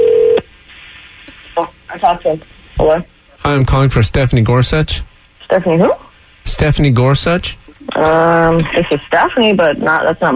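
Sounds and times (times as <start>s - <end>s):
steady electronic telephone tone: 0.0s - 0.4s
speech: 1.6s - 10.3s.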